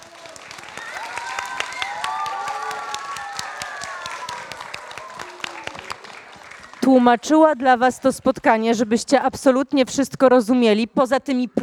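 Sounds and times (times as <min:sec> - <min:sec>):
audience applause: 0:00.0 - 0:08.1
speech: 0:06.9 - 0:11.6.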